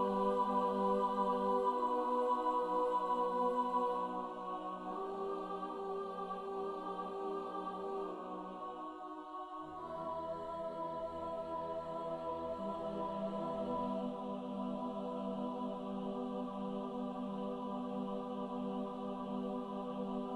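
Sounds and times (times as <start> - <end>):
choir singing: 0.0 - 20.3.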